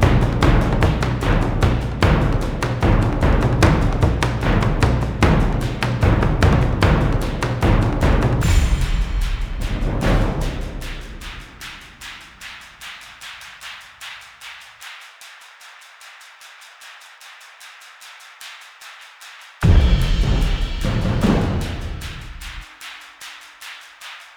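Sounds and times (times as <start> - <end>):
suspense music: 0.0 - 12.5, 19.6 - 22.6.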